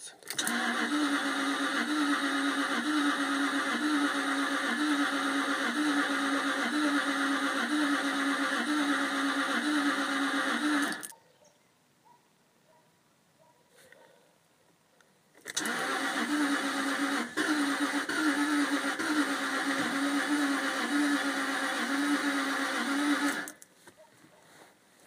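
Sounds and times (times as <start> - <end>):
2003 Stype 4.2l car engine failing to start: 0.3 - 11.1, 15.4 - 23.6.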